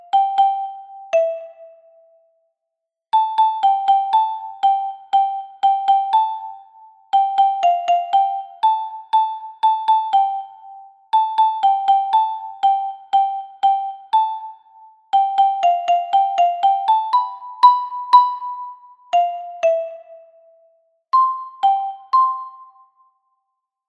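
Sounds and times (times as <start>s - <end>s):
soprano xylophone: 0.0s - 2.2s, 3.2s - 23.2s.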